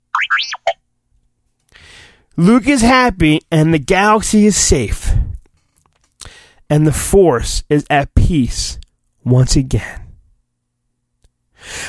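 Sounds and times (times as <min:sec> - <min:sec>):
R2-D2 droid happy beeping: 0:00.2 - 0:00.8
speech: 0:02.4 - 0:05.1, 0:06.7 - 0:10.0, 0:11.6 - 0:11.8.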